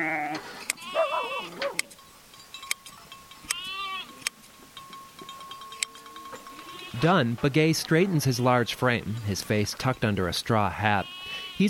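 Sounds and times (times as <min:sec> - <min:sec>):
sheep bleating while being sheared: 0:00.0 - 0:01.6, 0:03.5 - 0:04.2, 0:06.6 - 0:07.2, 0:10.7 - 0:11.6
speech: 0:07.0 - 0:11.6.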